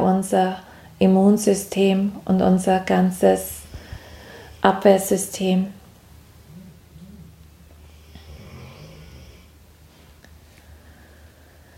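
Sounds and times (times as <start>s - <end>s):
speech: 0.2s - 3.6s, 4.6s - 5.8s
dog snoring: 6.4s - 9.6s.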